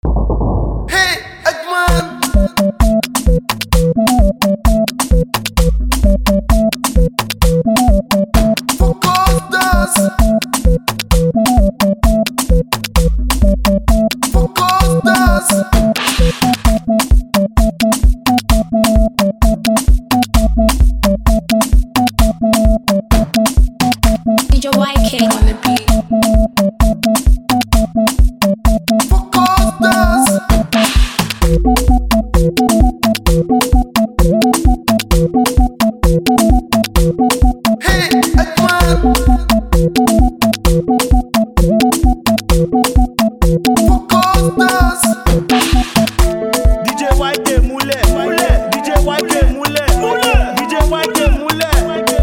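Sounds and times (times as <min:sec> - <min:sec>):
music beat: 0:00.0 - 0:52.2.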